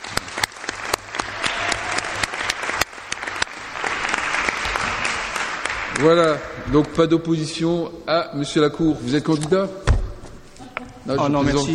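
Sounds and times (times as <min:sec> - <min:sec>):
audience applause: 0:00.0 - 0:06.6
speech: 0:06.0 - 0:09.9, 0:11.1 - 0:11.7.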